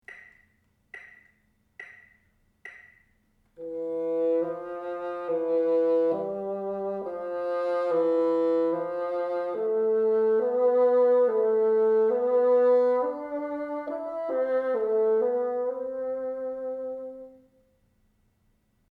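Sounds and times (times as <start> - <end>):
bassoon: 3.6 - 17.6.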